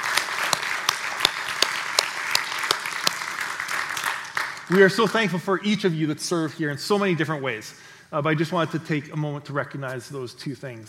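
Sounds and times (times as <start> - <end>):
audience round of applause: 0.0 - 5.2
speech: 4.7 - 10.8.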